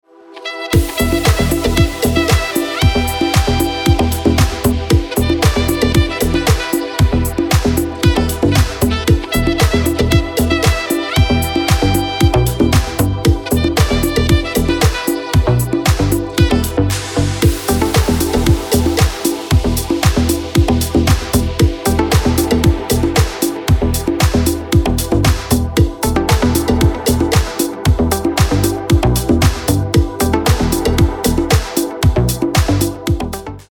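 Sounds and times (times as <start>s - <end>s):
saxophone: 0.1s - 33.4s
house rhythm: 0.8s - 33.6s.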